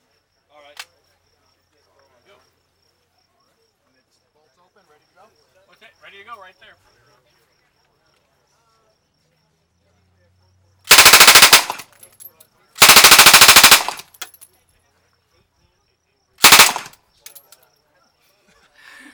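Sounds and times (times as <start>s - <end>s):
small clicks: 10.9s - 11.8s, 12.8s - 14.4s, 16.4s - 17.4s
Colt Thompson submachine gun firing bursts: 10.9s - 12.0s, 12.8s - 14.3s, 16.4s - 16.9s.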